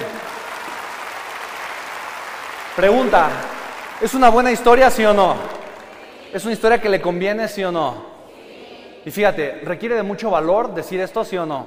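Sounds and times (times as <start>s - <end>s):
audience applause: 0.0s - 6.7s
speech: 2.8s - 5.6s, 6.3s - 8.1s, 9.0s - 11.6s.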